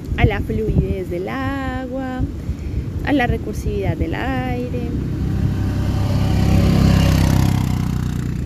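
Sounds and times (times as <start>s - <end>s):
speech: 0.2s - 2.4s, 3.0s - 5.2s
motorbike engine passing: 4.3s - 8.4s.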